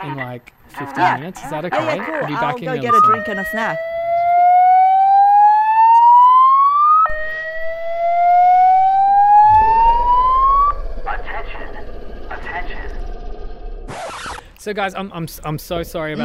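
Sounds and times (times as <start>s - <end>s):
speech: 0.0s - 3.9s, 14.6s - 16.2s
building fire drill alarm: 2.8s - 10.9s.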